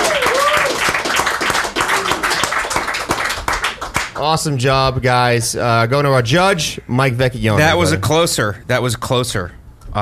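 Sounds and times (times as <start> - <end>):
whoops and cheers: 0.0 - 1.0
audience round of applause: 0.0 - 4.2
speech: 4.2 - 10.0.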